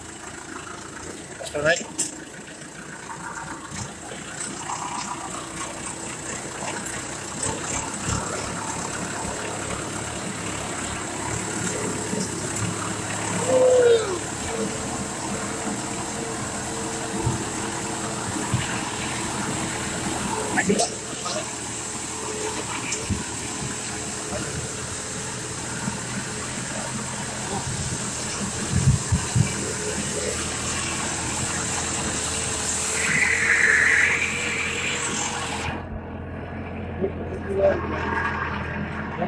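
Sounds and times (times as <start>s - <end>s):
rushing water of the Lothar river stream: 0.0s - 39.2s
vehicle engine fording the Lothar river stream: 0.0s - 39.2s
speech: 1.5s - 2.2s.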